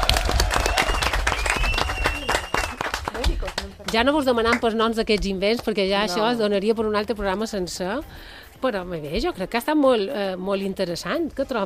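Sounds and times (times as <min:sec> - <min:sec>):
audience applause: 0:00.0 - 0:04.0
speech: 0:03.9 - 0:11.6.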